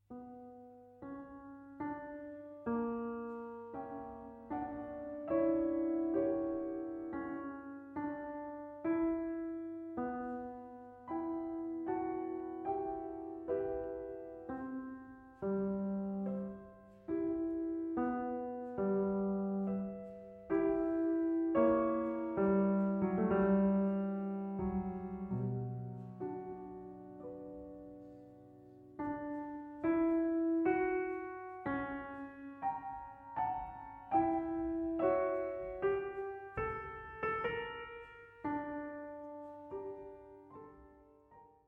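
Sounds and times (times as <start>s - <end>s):
piano sonata in F-sharp minor: 0.0s - 41.6s.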